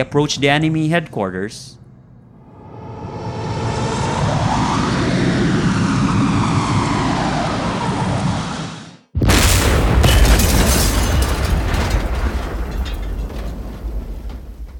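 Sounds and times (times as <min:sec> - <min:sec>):
speech: 0:00.0 - 0:01.8
homemade airplane engine drone in flight: 0:01.8 - 0:09.1
sudden loud broadband explosion: 0:02.4 - 0:14.7.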